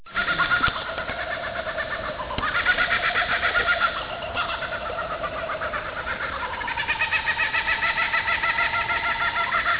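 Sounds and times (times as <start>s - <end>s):
laughing kookaburra laughter: 0.1s - 9.7s.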